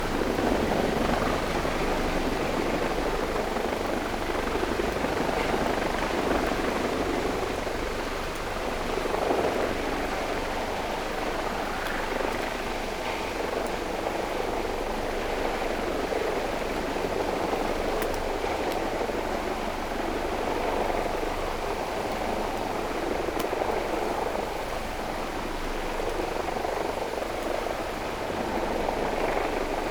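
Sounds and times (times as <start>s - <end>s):
helicopter: 0.0s - 29.9s.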